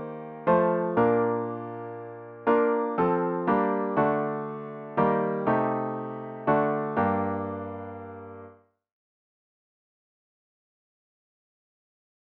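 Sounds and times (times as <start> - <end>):
solo piano: 0.0 - 8.6.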